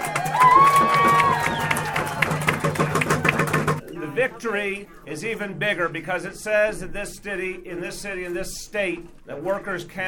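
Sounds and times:
audience applause: 0:00.0 - 0:03.8
crowd cheering: 0:00.0 - 0:03.8
speech: 0:04.2 - 0:10.0.

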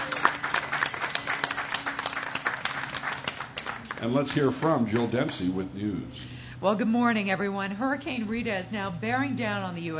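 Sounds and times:
audience applause for a guest on a morning show: 0:00.0 - 0:05.5
speech: 0:04.0 - 0:09.9.

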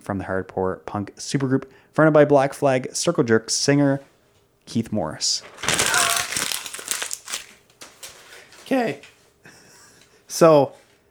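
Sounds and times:
speech: 0:00.0 - 0:04.1, 0:04.7 - 0:05.8, 0:08.7 - 0:09.1, 0:10.3 - 0:10.8
paper being crumpled up into a ball: 0:05.6 - 0:08.7.

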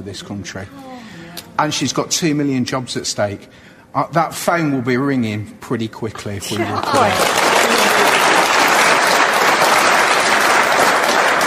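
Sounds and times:
speech: 0:00.0 - 0:00.9, 0:01.6 - 0:07.5
audience cheering and applauding: 0:06.6 - 0:11.4.

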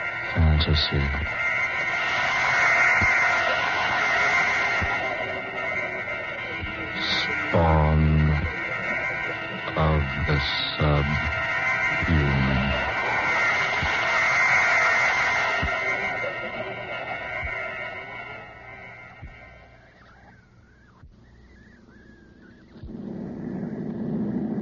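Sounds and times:
laughter: 0:00.0 - 0:19.8
airplane taking off with aircraft engine roar: 0:00.0 - 0:20.0
speech: 0:00.6 - 0:01.4, 0:09.8 - 0:11.4, 0:12.0 - 0:12.8
faint regular thumps: 0:20.0 - 0:24.5.

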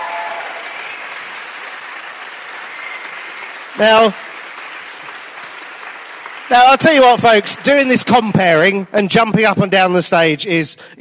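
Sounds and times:
audience applause: 0:00.0 - 0:08.9
speech: 0:03.8 - 0:04.2, 0:06.5 - 0:10.9.

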